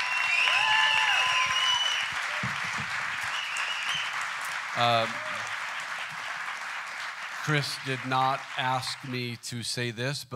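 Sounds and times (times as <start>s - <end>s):
whistles: 0.0s - 2.6s, 3.2s - 4.2s
crowd applauding: 0.0s - 9.4s
speech: 4.8s - 5.2s, 7.4s - 10.3s.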